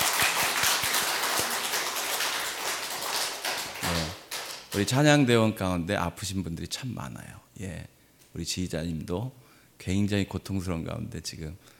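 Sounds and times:
crowd applauding: 0:00.0 - 0:04.8
speech: 0:04.8 - 0:11.7.

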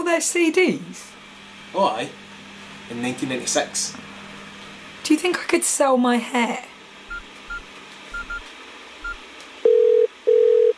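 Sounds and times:
speech: 0:00.1 - 0:02.2, 0:02.9 - 0:04.1, 0:05.0 - 0:06.7
telephone ringing tone: 0:09.6 - 0:10.7.

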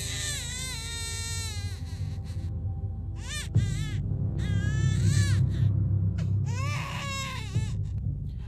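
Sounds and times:
infant wailing loudly: 0:00.0 - 0:02.5, 0:03.2 - 0:05.7, 0:06.5 - 0:07.8
steady low rumble: 0:00.0 - 0:08.4.

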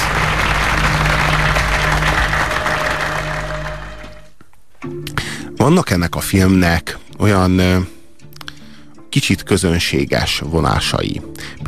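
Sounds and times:
audience applauding two diamond industry representatives in a film scene: 0:00.0 - 0:04.3
speech: 0:05.6 - 0:08.0, 0:09.2 - 0:11.6.

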